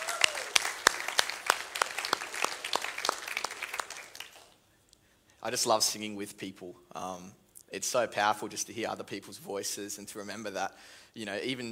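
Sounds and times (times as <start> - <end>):
applause: 0.0 - 4.6
speech: 5.4 - 11.7.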